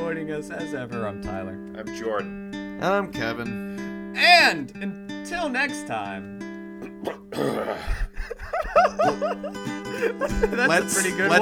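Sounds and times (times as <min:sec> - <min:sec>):
speech: 0:00.1 - 0:06.4, 0:07.0 - 0:11.3
short voiced grunting bursts: 0:06.8 - 0:08.3
rough raspy throat clearing: 0:06.8 - 0:08.4
laughter: 0:07.8 - 0:11.3.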